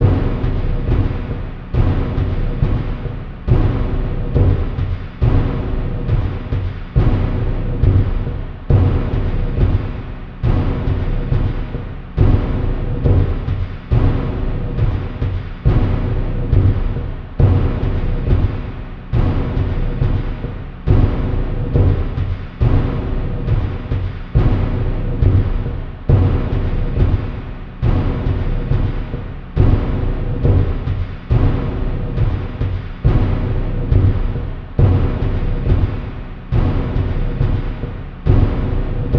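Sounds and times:
battle drums: 0.0 - 39.1.

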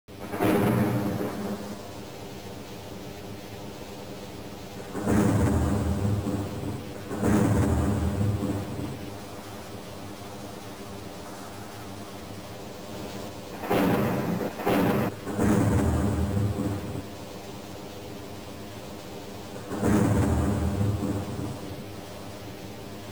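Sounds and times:
thunder: 0.1 - 2.0, 4.8 - 9.6, 12.8 - 17.1, 19.6 - 21.9.

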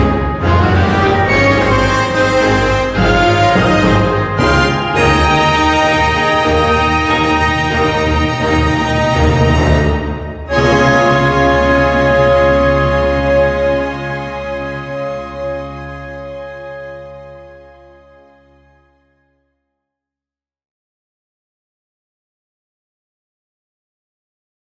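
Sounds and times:
orchestral arrangement: 0.0 - 18.8.

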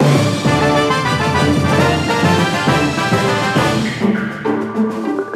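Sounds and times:
fanfare: 0.0 - 5.2.

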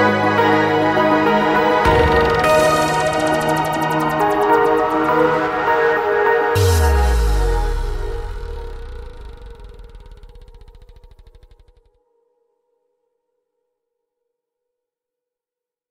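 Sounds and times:
synthwave retrowave background music: 0.0 - 11.8.

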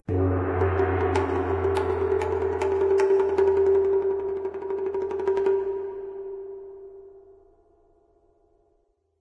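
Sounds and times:
Japanese music intro: 0.0 - 4.8.

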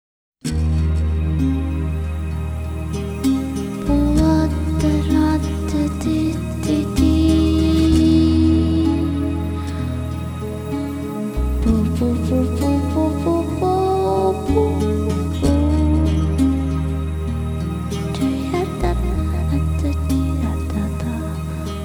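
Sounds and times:
calm melody: 0.6 - 21.8.

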